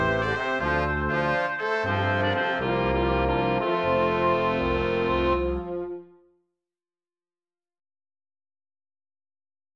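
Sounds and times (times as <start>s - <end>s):
cheerful music in F: 0.0s - 6.4s.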